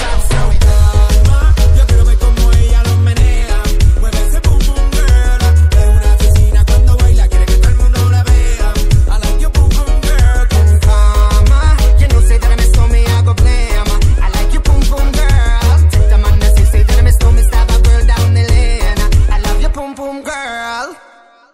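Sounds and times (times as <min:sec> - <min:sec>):
ringtone: 0:00.6 - 0:19.8.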